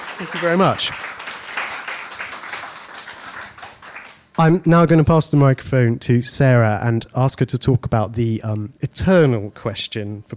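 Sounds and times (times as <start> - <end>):
round of applause: 0.0 - 4.4
speech: 0.2 - 1.2, 4.4 - 10.3.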